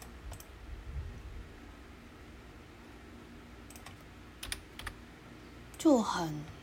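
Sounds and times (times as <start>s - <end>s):
typing on a computer keyboard: 3.6s - 5.0s
speech: 5.8s - 6.6s.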